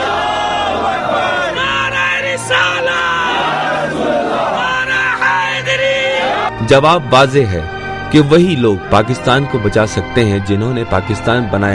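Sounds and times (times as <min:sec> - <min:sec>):
large crowd chanting a religious slogan in reply to a leader's call at an Urdu religious gathering: 0:00.0 - 0:06.5
speech: 0:06.7 - 0:11.7.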